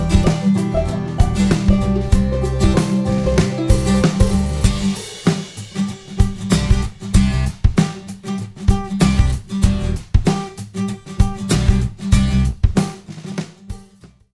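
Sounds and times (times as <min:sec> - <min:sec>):
blues folk guitars: 0:00.0 - 0:14.1.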